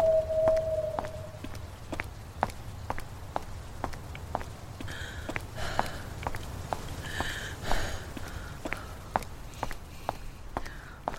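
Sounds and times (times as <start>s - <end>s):
low rumble: 0.0s - 1.8s
footstep-like clicks: 0.4s - 11.1s.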